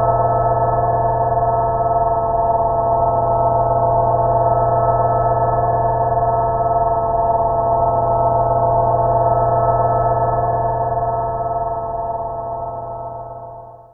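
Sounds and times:
crystal shimmer musical drone with reverb: 0:00.0 - 0:13.9.

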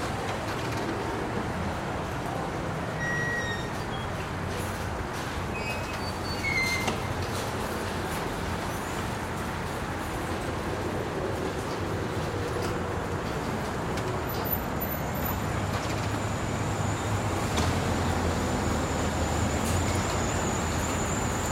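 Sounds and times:
traffic by a supermarket parking lot: 0:00.0 - 0:21.5
supermarket shopping carts in a store parking lot: 0:04.5 - 0:21.5.

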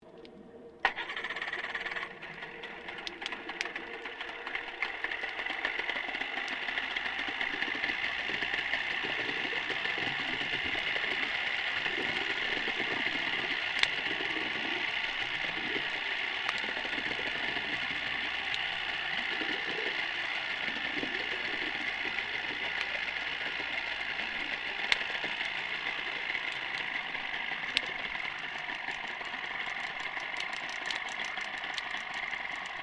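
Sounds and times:
Merlin40 outboard boat motor ignition and idling submerged: 0:00.7 - 0:32.8.

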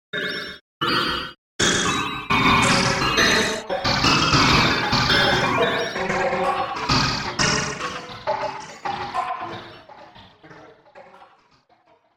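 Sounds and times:
electronic percussive noise: 0:00.1 - 0:09.6.

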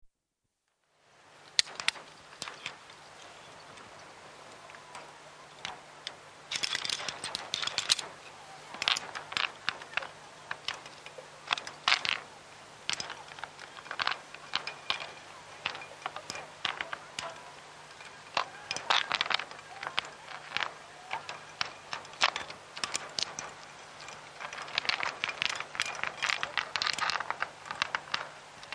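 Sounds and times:
climbing equipment chinking on rock face: 0:06.5 - 0:12.3, 0:12.9 - 0:28.7.

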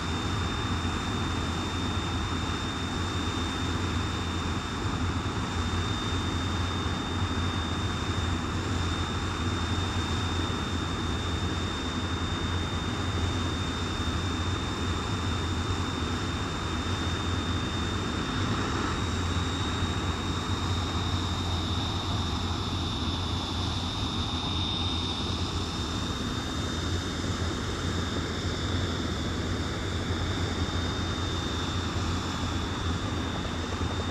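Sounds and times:
CA-27 Sabre jet aircraft idling: 0:00.0 - 0:34.0.

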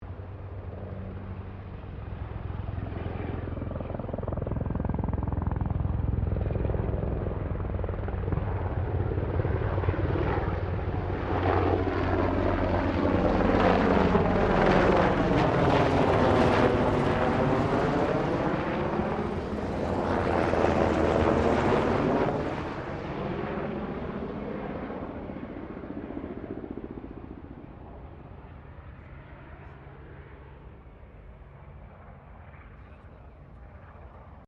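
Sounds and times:
Sikorsky UH-60 Black Hawk helicopter passing: 0:00.0 - 0:34.4.

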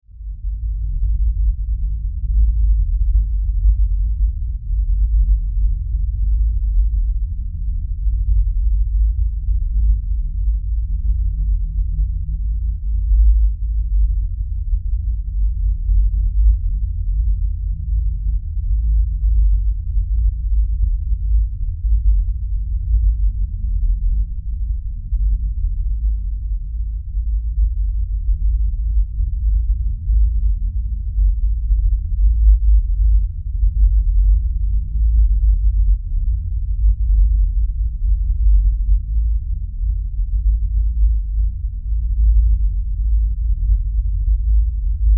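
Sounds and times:
science fiction deep rumbling drone: 0:00.0 - 0:45.1.

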